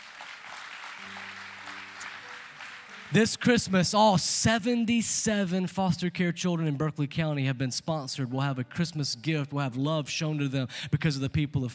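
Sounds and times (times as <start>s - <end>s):
audience clapping: 0.0s - 4.0s
speech: 3.1s - 11.7s.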